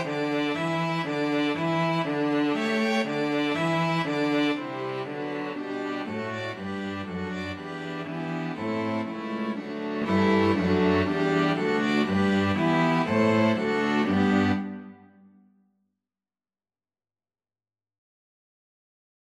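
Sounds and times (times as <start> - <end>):
string quartet: 0.0 - 15.0.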